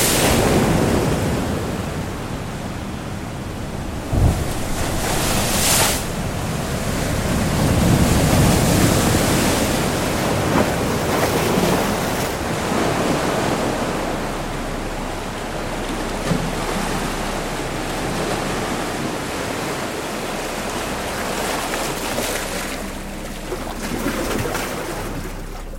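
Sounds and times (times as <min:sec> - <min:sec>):
ocean waves: 0:00.0 - 0:25.7.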